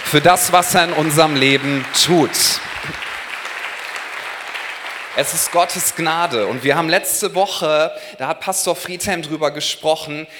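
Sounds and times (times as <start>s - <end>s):
audience applause filling the room: 0.0s - 6.9s
speech: 0.1s - 3.1s, 5.2s - 10.3s.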